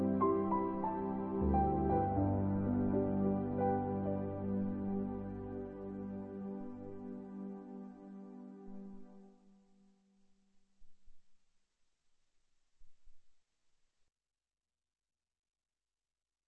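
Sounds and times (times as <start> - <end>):
improvised music: 0.0 - 9.2.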